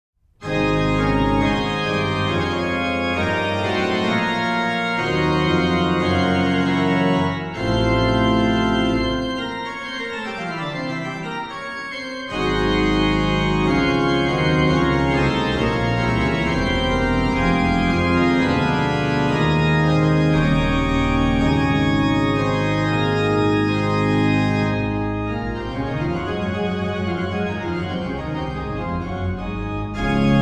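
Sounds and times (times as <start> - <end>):
organ chorale prelude: 0.4 - 30.4.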